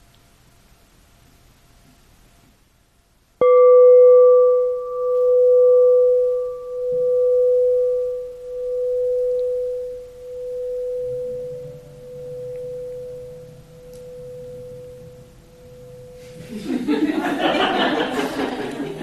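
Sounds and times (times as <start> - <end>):
meditation bell ringing: 3.4 - 16.4
laughter and chatter: 16.4 - 19.0.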